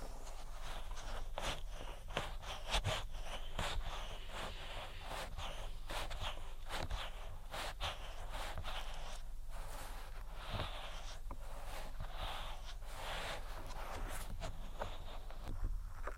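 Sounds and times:
constant low hum: 0.0s - 16.1s
ear attention rubbing and tapping strokes: 0.0s - 16.1s.

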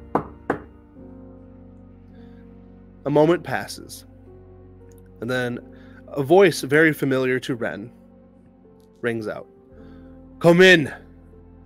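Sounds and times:
firm knocks on a door: 0.0s - 0.7s
speech: 3.0s - 4.1s, 5.2s - 8.0s, 9.0s - 9.5s, 10.4s - 11.0s.

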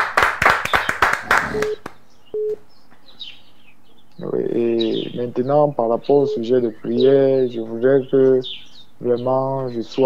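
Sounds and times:
church congregation hand claps acclaiming the name of Jesus Christ: 0.0s - 2.0s
short steady electronic beeps: 1.4s - 2.6s, 6.1s - 6.6s
speech: 1.6s - 1.8s, 5.2s - 10.0s.

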